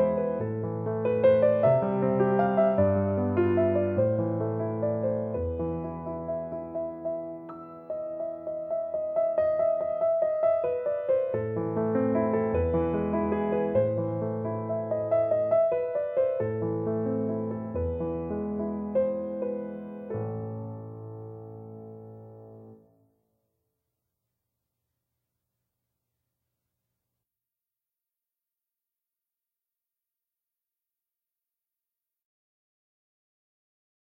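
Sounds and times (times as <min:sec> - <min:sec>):
piano bagatelle: 0:00.0 - 0:23.1.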